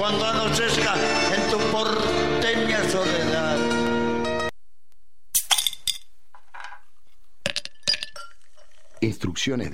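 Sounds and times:
speech: 0.1s - 4.0s, 9.0s - 9.7s
ice cubes dropping into a tall highball glass for Fernet and cola: 7.5s - 9.0s.

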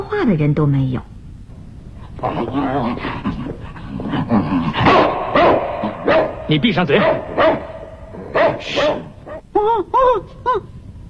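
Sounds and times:
speech: 0.2s - 1.1s, 2.2s - 7.7s, 8.3s - 10.7s
dog barking: 4.8s - 9.4s.

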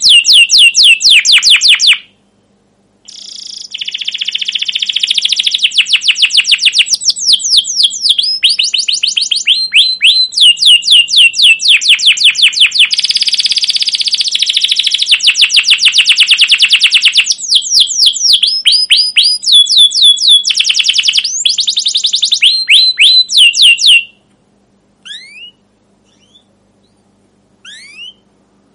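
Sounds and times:
caged domestic canary singing rolling trills: 0.0s - 2.2s, 3.0s - 24.3s, 25.0s - 28.7s.

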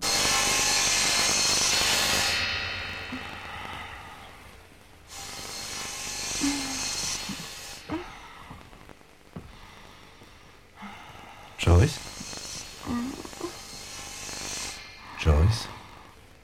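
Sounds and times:
saws cutting wood in a large sawmill in Seattle: 0.0s - 3.5s, 5.1s - 8.0s, 11.6s - 16.0s.

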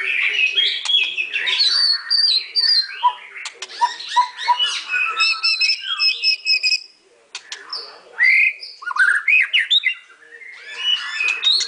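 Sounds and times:
white-rumped shama song for training songbirds: 0.0s - 11.6s.

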